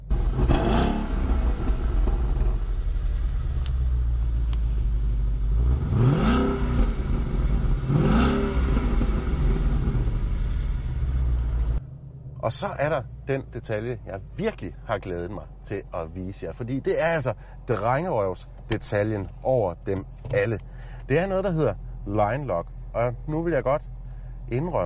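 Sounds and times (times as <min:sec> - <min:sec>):
2016 Ford Mustang GT V8 engine revving: 0:00.0 - 0:04.8, 0:05.4 - 0:13.0
2016 Ford Mustang GT V8 engine idling: 0:00.0 - 0:24.8
speech: 0:12.5 - 0:24.8.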